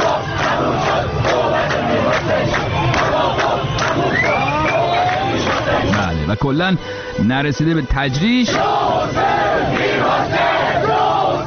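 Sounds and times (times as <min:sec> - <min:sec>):
celebrating street crowd shouting and cheering: 0:00.0 - 0:06.6, 0:08.0 - 0:11.4
higher whoops and calls: 0:04.0 - 0:05.3
speech: 0:06.3 - 0:09.3.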